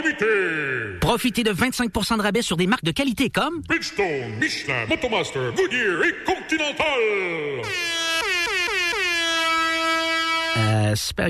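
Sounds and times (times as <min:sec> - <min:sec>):
speech: 0:00.0 - 0:08.1, 0:10.6 - 0:11.2
air horn blaring: 0:07.6 - 0:10.9.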